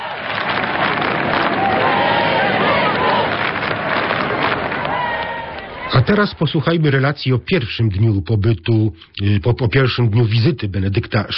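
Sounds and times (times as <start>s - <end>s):
crowd applauding and cheering: 0.0s - 6.6s
speech: 6.1s - 11.3s.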